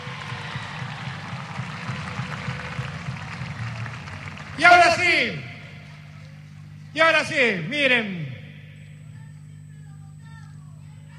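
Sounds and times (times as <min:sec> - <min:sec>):
audience applause: 0:00.0 - 0:06.4
people cheering: 0:00.0 - 0:06.6
speech: 0:04.6 - 0:05.5, 0:07.0 - 0:08.2.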